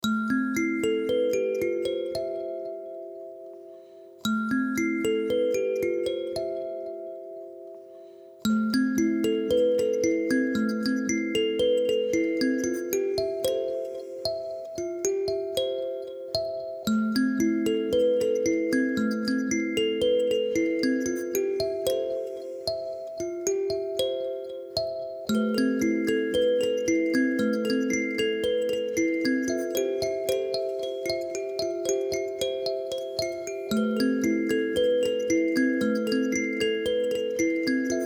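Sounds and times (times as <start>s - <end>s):
kalimba intro melody: 0.0s - 38.0s.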